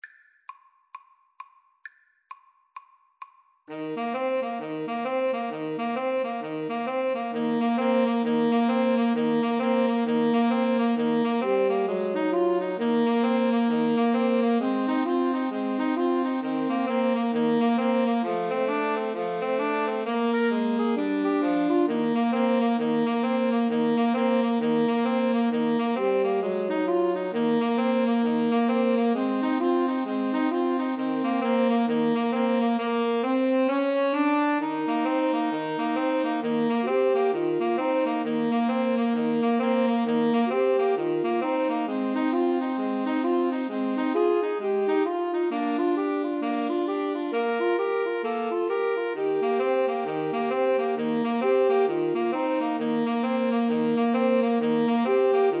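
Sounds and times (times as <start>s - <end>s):
two alto saxophones and a tenor saxophone playing boogie: 3.7s - 55.5s.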